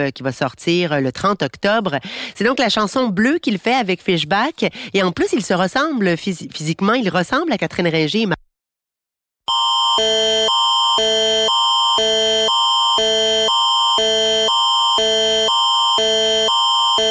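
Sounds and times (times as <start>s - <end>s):
speech: 0.0s - 8.4s, 10.0s - 11.3s
Canadian emergency alert attention signal for an RCMP police alert in Belmont, Nova Scotia: 9.5s - 17.0s.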